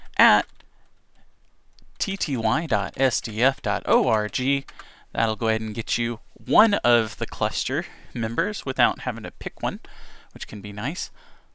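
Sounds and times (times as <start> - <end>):
computer keyboard clicks typing an SSH command: 0.1 - 4.9
speech: 0.2 - 0.5, 2.0 - 11.3.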